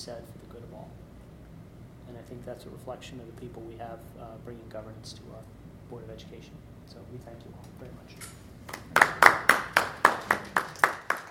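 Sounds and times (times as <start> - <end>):
speech: 0.0 - 1.1, 2.1 - 8.4
Board of Education meeting audience clapping in an echoing room: 8.7 - 11.2.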